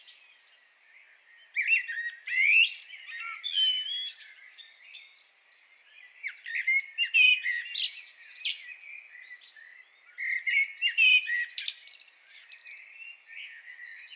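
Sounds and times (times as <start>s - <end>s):
common blackbird song: 0.0s - 14.1s.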